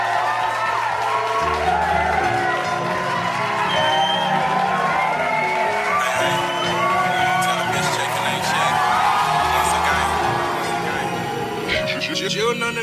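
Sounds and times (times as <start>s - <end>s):
audience cheering and whooping for musical guests: 0.0s - 11.9s
bass-heavy hip-hop beat: 5.7s - 12.8s.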